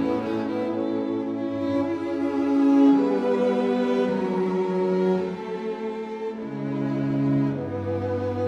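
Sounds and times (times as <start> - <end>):
string quartet playing in G major: 0.0 - 8.4.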